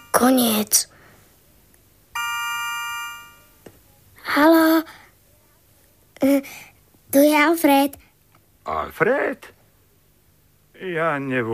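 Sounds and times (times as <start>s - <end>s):
speech: 0.2s - 0.9s, 4.3s - 5.0s, 6.2s - 8.0s, 8.7s - 9.6s, 10.8s - 11.5s
telephone ringing tone: 2.2s - 3.5s.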